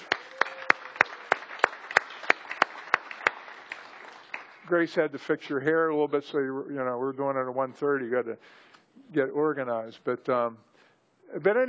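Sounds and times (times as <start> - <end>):
people clapping: 0.0 - 4.8
speech: 4.7 - 10.7, 11.3 - 11.6.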